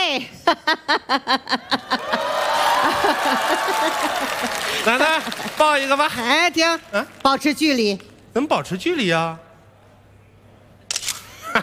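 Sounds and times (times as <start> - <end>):
speech: 0.2 - 1.7, 5.6 - 9.4
laughter: 0.5 - 6.0
phone camera shutter as a grandmother takes a photo: 10.9 - 11.4.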